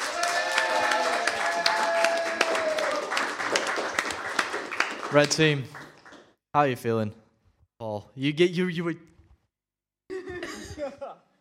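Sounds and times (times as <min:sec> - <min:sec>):
round of applause: 0:00.0 - 0:06.3
speech: 0:05.1 - 0:05.8, 0:06.6 - 0:07.2, 0:07.8 - 0:09.1.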